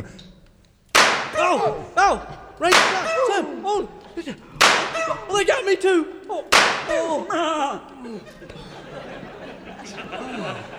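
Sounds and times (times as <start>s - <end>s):
gunshot in a radio drama: 1.0s - 1.6s, 2.7s - 3.3s, 4.6s - 5.2s, 6.6s - 7.2s
laughter: 1.2s - 10.7s
people exclaiming and talking: 1.2s - 10.7s
speech: 1.4s - 9.1s, 9.8s - 10.7s.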